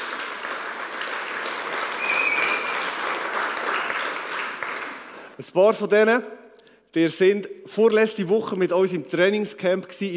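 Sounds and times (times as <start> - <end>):
audience applause: 0.0 - 5.3
speech: 5.4 - 10.1.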